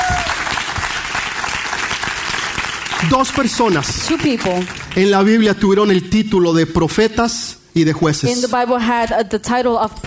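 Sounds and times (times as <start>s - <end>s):
strong audience applause: 0.0s - 5.6s
speech: 3.0s - 10.0s.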